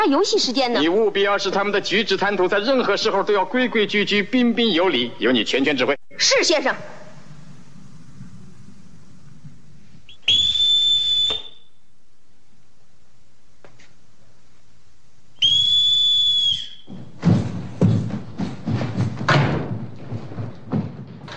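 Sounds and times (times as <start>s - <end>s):
speech: 0.0s - 6.9s
colonel's shrill whistle blasts: 10.1s - 11.8s, 15.4s - 16.9s
thumping footsteps: 16.6s - 21.3s.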